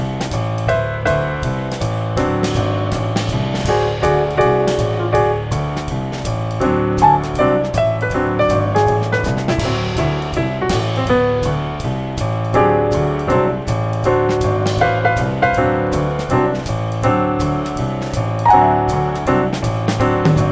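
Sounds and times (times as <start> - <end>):
jazz keyboard playing a dominant dissonance chord: 0.0 - 20.5.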